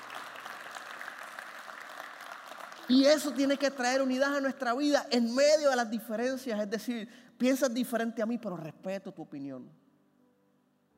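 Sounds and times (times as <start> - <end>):
audience applause: 0.0 - 3.6
speech: 2.9 - 9.8.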